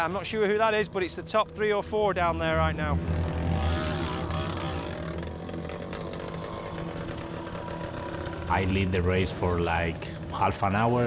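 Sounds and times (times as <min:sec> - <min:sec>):
speech: 0:00.0 - 0:03.4, 0:08.5 - 0:11.0
dirt bike engine racing with missing exhaust pipe: 0:02.3 - 0:11.0.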